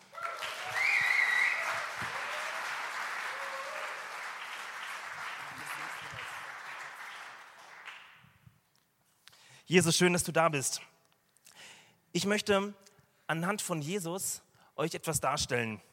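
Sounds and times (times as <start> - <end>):
faint cheers: 0.0 - 4.3
audience applause: 0.0 - 8.2
speech: 9.7 - 10.9, 12.2 - 15.9.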